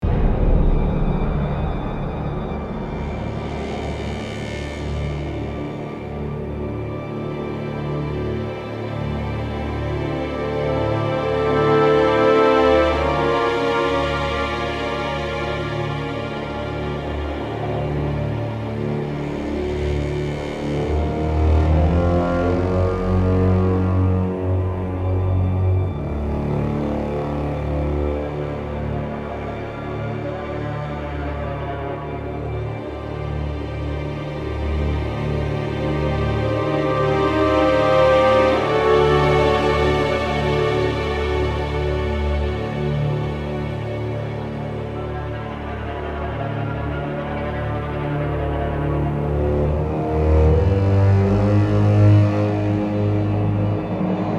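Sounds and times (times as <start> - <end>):
music: 0.0 - 54.3.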